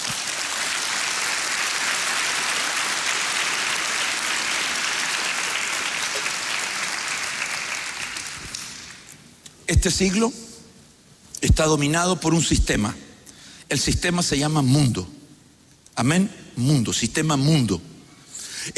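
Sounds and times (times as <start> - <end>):
applause: 0.0 - 9.1
speech: 9.7 - 10.4, 11.4 - 13.1, 13.7 - 15.2, 16.0 - 17.9.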